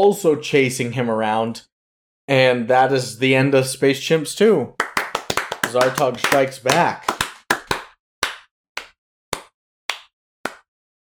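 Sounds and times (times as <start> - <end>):
speech: 0.0 - 1.7, 2.3 - 4.8, 5.7 - 7.1
one person clapping hands: 4.8 - 10.7.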